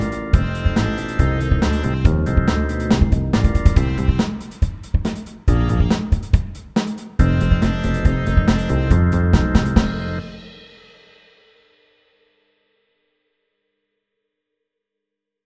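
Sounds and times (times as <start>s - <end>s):
fast 8 bar blues: 0.0s - 10.6s.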